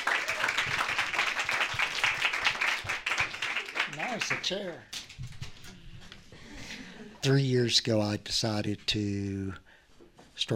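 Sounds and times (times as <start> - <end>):
audience applause: 0.0 - 4.8
speech: 4.1 - 5.3, 7.2 - 9.6, 10.4 - 10.5.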